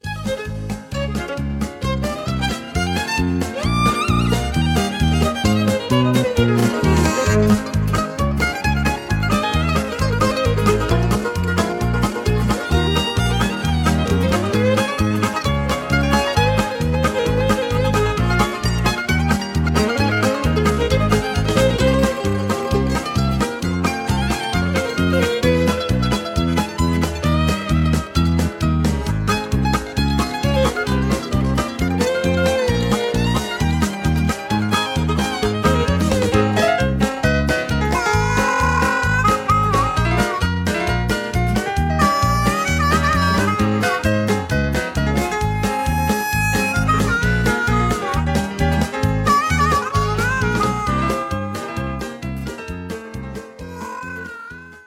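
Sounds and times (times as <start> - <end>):
high key instrumental music: 0.0 - 54.8.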